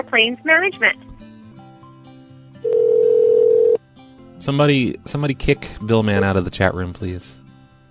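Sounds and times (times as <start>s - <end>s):
speech: 0.0s - 1.1s, 4.4s - 7.4s
telephone ringing: 2.6s - 3.8s.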